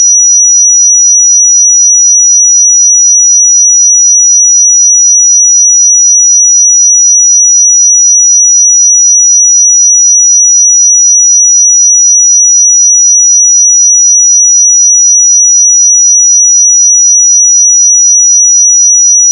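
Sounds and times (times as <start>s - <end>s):
5852 Hz pure sine tone: 0.0s - 19.3s.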